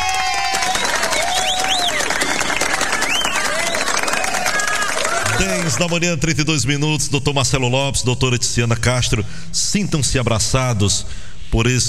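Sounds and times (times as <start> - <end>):
round of applause: 0.0 - 6.0
speech: 5.7 - 11.8.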